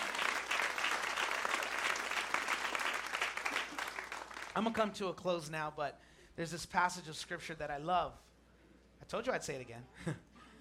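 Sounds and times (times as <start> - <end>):
audience clapping hands: 0.0 - 4.9
speech: 4.6 - 8.3, 9.1 - 10.3.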